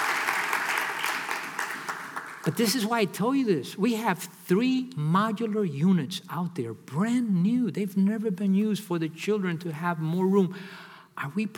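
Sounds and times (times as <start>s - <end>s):
audience clapping: 0.0s - 2.9s
speech: 2.5s - 11.5s.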